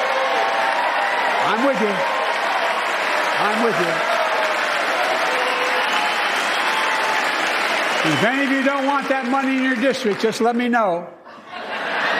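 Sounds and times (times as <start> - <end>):
whooping cheers: 0.0 - 9.2
crowd applauding: 0.0 - 11.0
speech: 1.5 - 2.2, 3.4 - 4.2, 8.0 - 11.2
laughter: 11.2 - 12.1.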